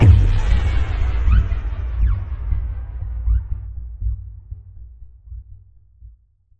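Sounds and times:
impact: 0.0s - 3.2s.

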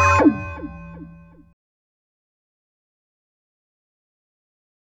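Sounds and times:
planetary machine computer sounds: 0.2s - 1.4s.

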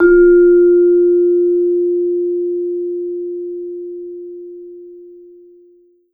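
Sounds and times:
vibraphone: 0.0s - 2.3s.

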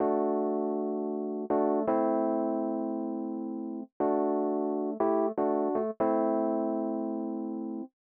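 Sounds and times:
Rhodes electric piano in nu jazz house style: 0.0s - 7.9s.

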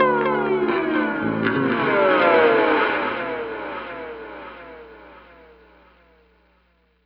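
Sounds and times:
guitar glissando tone: 0.0s - 5.1s.

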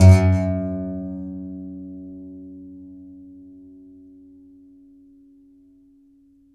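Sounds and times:
contrabass balalaika plucked strings: 0.0s - 2.3s.

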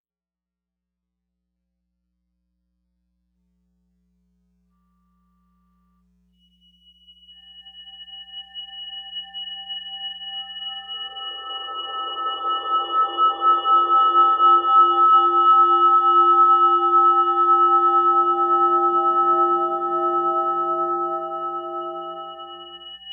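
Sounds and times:
ominous drones: 10.6s - 23.1s.

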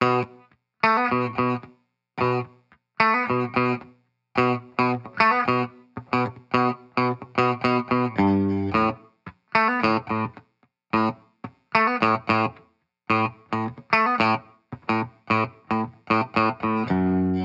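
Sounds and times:
1970s-style guitars in B minor: 0.0s - 17.4s.

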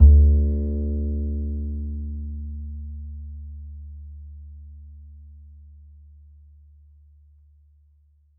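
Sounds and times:
upright acoustic bass in E: 0.0s - 5.2s.

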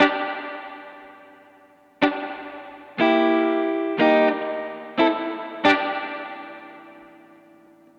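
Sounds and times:
70s analog funk guitar: 2.0s - 7.0s.

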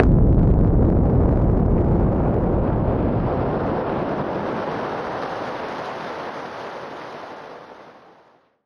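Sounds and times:
noise bomb: 0.0s - 4.0s.

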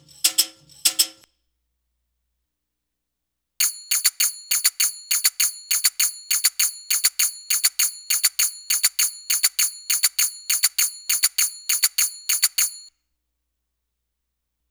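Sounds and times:
Arabic rhythm percussion: 3.9s - 12.9s.

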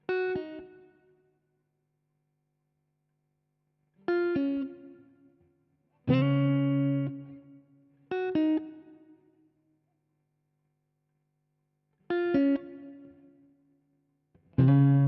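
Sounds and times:
guitar loop of chords and melodies in C sharp minor: 0.0s - 0.9s, 4.0s - 5.1s, 6.0s - 9.2s, 12.1s - 13.3s, 14.4s - 15.0s.

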